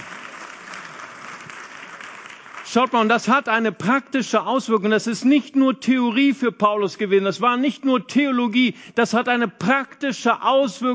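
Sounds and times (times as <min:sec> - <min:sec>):
congregation applauding during a sermon: 0:00.0 - 0:04.2
speech: 0:02.7 - 0:10.9.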